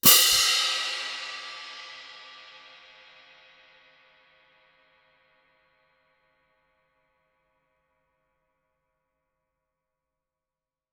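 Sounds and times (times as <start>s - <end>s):
orchestral crash cymbals played very loud: 0.0s - 3.2s.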